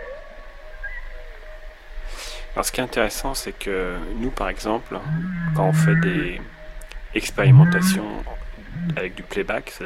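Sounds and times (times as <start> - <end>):
speech: 2.6 - 6.6, 7.1 - 9.8
whale vocalizations: 5.0 - 6.5, 7.4 - 9.2.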